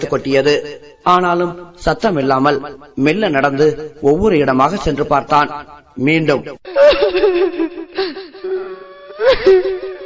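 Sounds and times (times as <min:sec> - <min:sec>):
speech: 0:00.0 - 0:09.9
woman crying, audio drama sound effect: 0:06.7 - 0:10.0.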